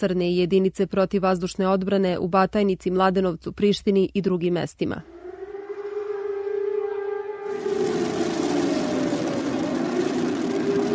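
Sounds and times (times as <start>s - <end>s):
speech: 0.0s - 5.2s
broad roaring rush of noise: 5.0s - 10.9s
civil defense air raid siren wailing: 5.0s - 10.9s.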